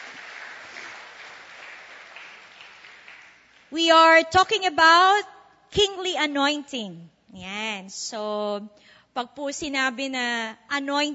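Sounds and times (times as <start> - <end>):
church congregation applauding during worship: 0.0 - 3.8
speech: 3.7 - 11.1.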